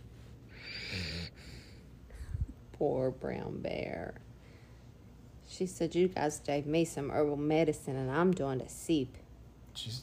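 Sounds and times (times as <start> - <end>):
quiet breathing: 0.0 - 2.6, 4.3 - 5.2
dog snoring: 0.6 - 1.7
speech: 2.8 - 4.3, 5.6 - 9.2, 9.8 - 10.0.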